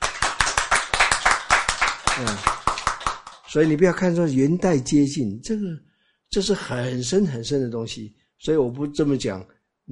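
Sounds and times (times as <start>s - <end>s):
rhythmic hand clapping during a Buddhist dharma talk: 0.0s - 4.0s
speech: 2.2s - 2.6s, 3.5s - 9.8s.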